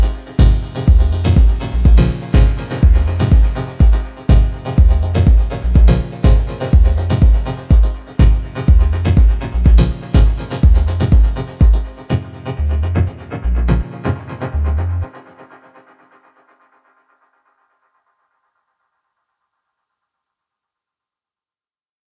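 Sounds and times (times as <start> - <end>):
chords: 0.0 - 15.5.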